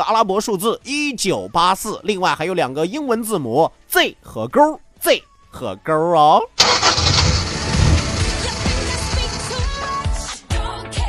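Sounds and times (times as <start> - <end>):
speech: 0.1 - 7.0
car engine starting: 6.6 - 10.3.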